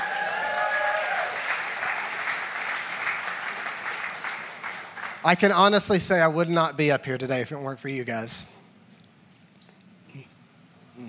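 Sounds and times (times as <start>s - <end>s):
audience applause: 0.0s - 5.7s
speech: 5.2s - 8.5s.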